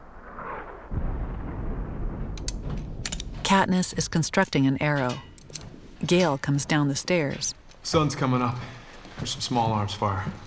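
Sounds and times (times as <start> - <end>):
mortar shells exploding: 0.0 - 3.7
speech: 3.5 - 5.3, 6.0 - 10.4.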